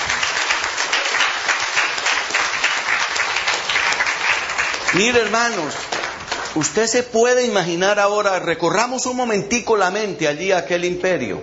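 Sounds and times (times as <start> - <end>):
audience applause: 0.0 - 7.0
speech: 4.9 - 5.9, 6.6 - 11.4.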